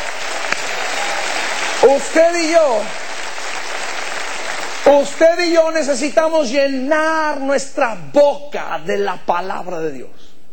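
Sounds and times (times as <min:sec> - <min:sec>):
audience applauding: 0:00.0 - 0:06.0
speech: 0:01.9 - 0:03.0, 0:04.9 - 0:10.3.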